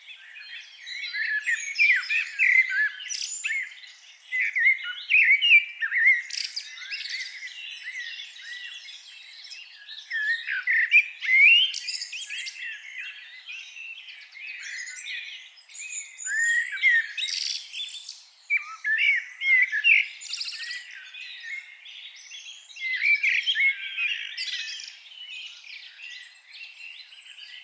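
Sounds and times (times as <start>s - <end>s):
Eurasian blackbird singing: 0.0s - 27.6s.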